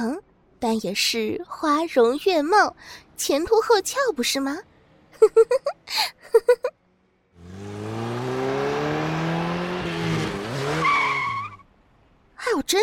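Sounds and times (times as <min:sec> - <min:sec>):
speech: 0:00.0 - 0:06.8, 0:12.6 - 0:12.8
high-end sports car engine revving: 0:07.4 - 0:10.8.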